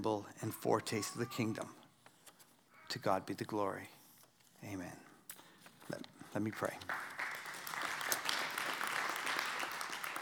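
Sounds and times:
speech: 0.0s - 1.8s, 2.9s - 4.0s, 4.6s - 5.1s, 5.9s - 7.0s
audience applause: 6.9s - 10.2s.

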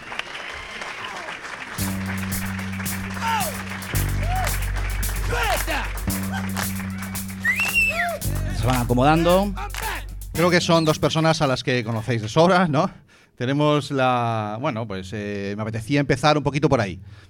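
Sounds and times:
audience applause: 0.0s - 8.7s
speech: 8.6s - 9.7s, 10.4s - 17.2s.

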